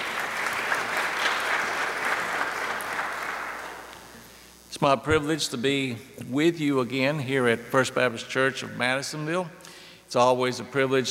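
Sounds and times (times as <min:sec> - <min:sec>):
audience applause: 0:00.0 - 0:04.1
speech: 0:04.8 - 0:11.0.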